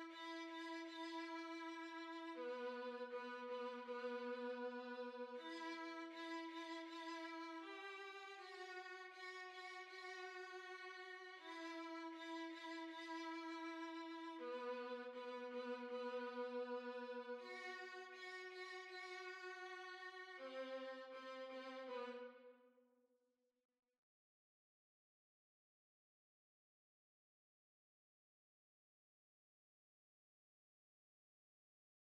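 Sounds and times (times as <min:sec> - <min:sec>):
violin: 0:00.0 - 0:22.5.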